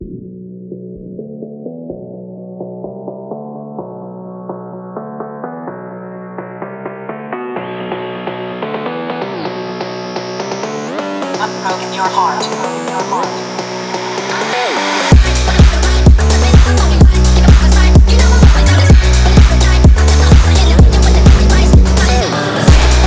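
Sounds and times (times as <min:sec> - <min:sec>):
phonk music: 0:06.6 - 0:23.0.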